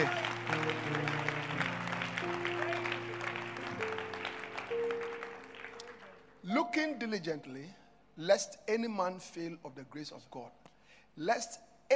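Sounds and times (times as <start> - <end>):
audience clapping: 0.0 - 6.4
speech: 7.0 - 11.9.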